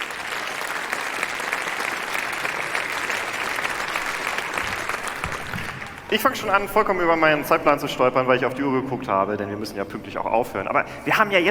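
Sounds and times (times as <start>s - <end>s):
audience applause: 0.0s - 6.6s
speech: 6.1s - 11.5s.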